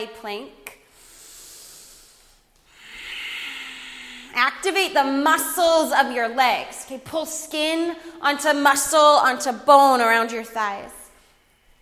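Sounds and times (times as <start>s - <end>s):
speech: 0.0s - 0.6s, 4.4s - 11.0s
ujjayi breathing in and out through the nose during yoga high plank: 0.9s - 4.4s.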